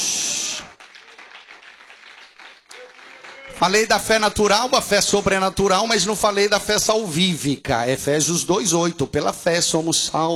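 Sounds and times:
audience applauding: 0:00.0 - 0:03.9
speech: 0:03.6 - 0:10.3.

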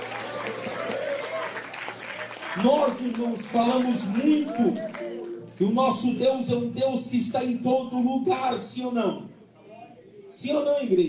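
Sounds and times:
church congregation clapping in praise: 0:00.0 - 0:06.3
speech: 0:02.6 - 0:09.3, 0:10.4 - 0:11.0.

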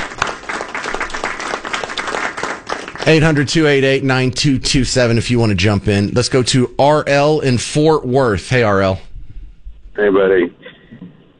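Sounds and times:
round of applause from a group: 0:00.0 - 0:04.0
speech: 0:03.0 - 0:09.1, 0:10.0 - 0:10.6.

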